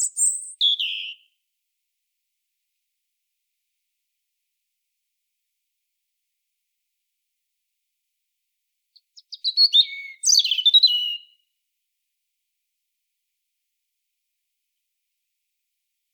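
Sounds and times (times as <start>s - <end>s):
European robin singing: 0.0s - 1.3s, 9.0s - 11.4s.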